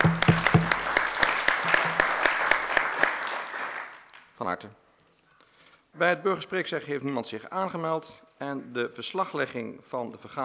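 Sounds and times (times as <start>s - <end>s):
applause in council meeting: 0.0s - 4.4s
speech: 4.4s - 4.8s, 6.0s - 10.4s.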